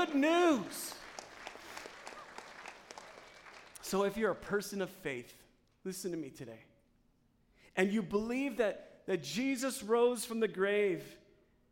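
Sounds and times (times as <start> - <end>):
speech: 0.0 - 1.0, 3.9 - 6.7, 7.8 - 11.2
audience applauding: 0.0 - 4.2.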